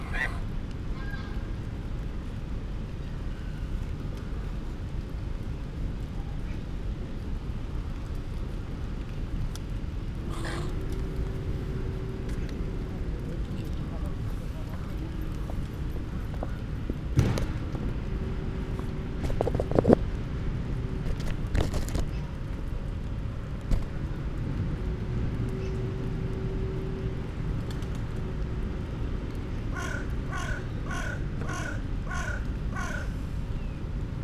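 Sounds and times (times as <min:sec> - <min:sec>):
close goose vocalisations: 0:00.0 - 0:01.4, 0:10.2 - 0:13.3, 0:29.7 - 0:33.2
crow calls: 0:00.0 - 0:01.4, 0:10.2 - 0:16.7, 0:29.6 - 0:33.3
rain: 0:00.0 - 0:34.2
people passing: 0:09.8 - 0:34.2.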